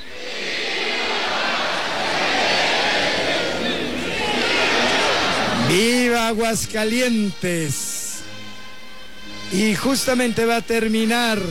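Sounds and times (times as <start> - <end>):
bullring crowd shouting: 0.0 - 5.8
speech: 5.8 - 7.9, 9.5 - 11.4.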